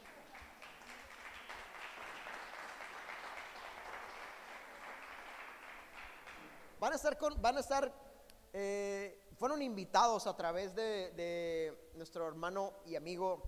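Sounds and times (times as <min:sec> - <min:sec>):
audience applause: 0:00.0 - 0:06.8
speech: 0:06.8 - 0:13.4.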